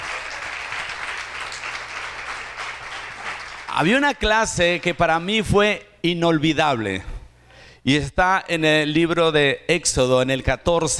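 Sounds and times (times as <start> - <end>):
applause for the teachers: 0.0 - 4.0
speech: 3.7 - 7.1, 7.8 - 10.9.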